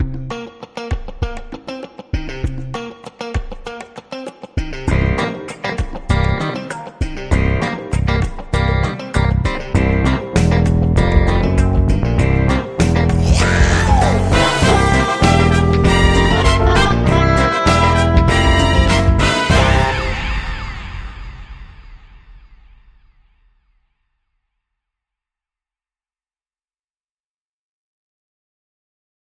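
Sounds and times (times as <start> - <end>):
funk music: 0.0 - 21.0.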